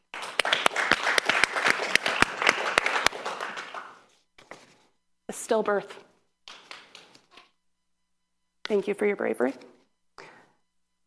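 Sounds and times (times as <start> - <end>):
audience applause: 0.0 - 4.0
speech: 5.5 - 6.1, 8.7 - 9.7.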